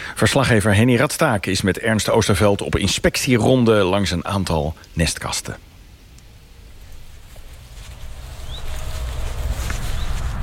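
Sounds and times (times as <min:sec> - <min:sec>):
speech: 0:00.1 - 0:05.7
common redstart parents alarm calling at the nest: 0:06.7 - 0:10.3.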